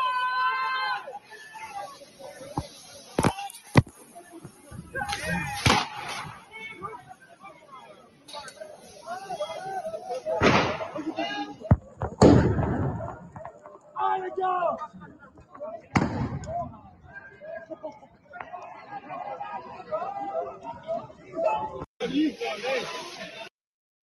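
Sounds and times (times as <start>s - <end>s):
talking and crowd chatter: 0.0s - 23.5s
police firing rubber bullets at protesters: 5.6s - 6.2s, 10.4s - 11.0s, 11.7s - 13.4s, 16.0s - 16.6s.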